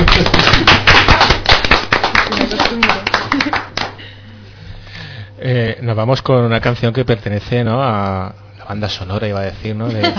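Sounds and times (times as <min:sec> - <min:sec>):
small group clapping: 0:00.0 - 0:04.0
speech: 0:06.0 - 0:10.1.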